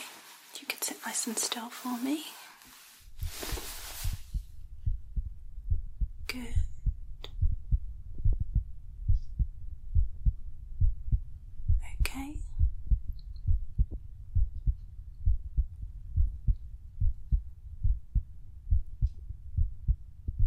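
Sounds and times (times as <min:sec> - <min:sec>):
scratchy rustle: 0:00.0 - 0:04.4
speech: 0:01.0 - 0:02.4
heartbeat heard through a stethoscope: 0:03.1 - 0:20.4.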